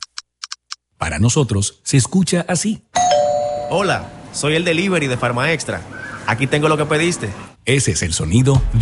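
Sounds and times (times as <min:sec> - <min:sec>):
speech: 0:01.1 - 0:02.9, 0:03.7 - 0:08.8
phone message notification tones: 0:03.0 - 0:04.3.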